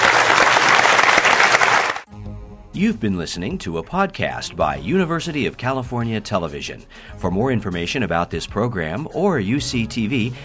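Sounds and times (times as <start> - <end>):
audience applause: 0.0 - 2.1
speech: 2.8 - 10.4.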